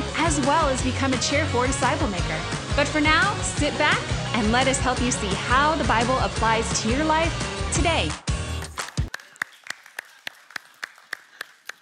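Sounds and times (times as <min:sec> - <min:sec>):
speech: 0:00.3 - 0:08.3
audience clapping: 0:08.6 - 0:11.7.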